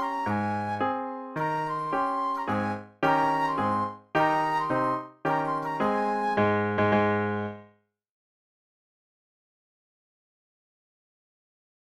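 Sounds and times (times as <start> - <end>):
flute playing a triumphal march: 0.0 - 7.5.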